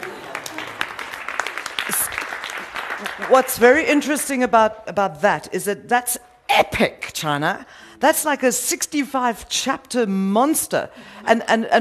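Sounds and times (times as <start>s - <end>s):
crowd applauding: 0.0s - 3.7s
speech: 3.0s - 11.8s.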